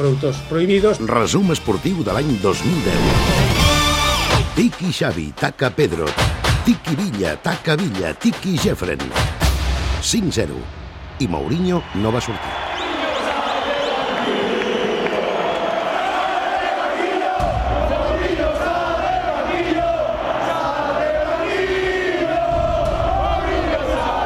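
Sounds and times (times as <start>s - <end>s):
speech: 0.0s - 3.6s, 4.6s - 9.4s, 10.0s - 12.6s
stadium crowd chanting in unison at Camp Nou: 12.5s - 24.2s.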